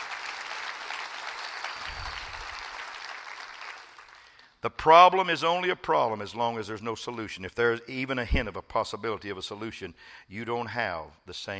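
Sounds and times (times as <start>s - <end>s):
audience clapping: 0.0s - 4.6s
speech: 4.6s - 11.5s.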